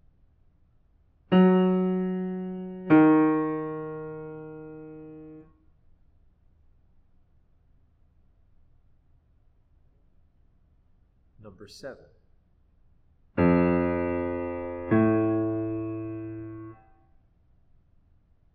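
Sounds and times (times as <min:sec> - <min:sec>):
musical intervals: 0:01.3 - 0:05.4, 0:13.4 - 0:16.8.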